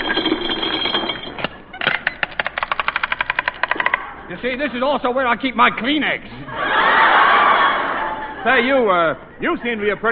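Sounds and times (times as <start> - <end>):
comic wallet-opening mechanical effect: 0.0 - 4.1
ratcheting clicks: 1.8 - 4.0
speech: 4.4 - 6.9, 8.4 - 10.1
laughter: 6.3 - 10.0.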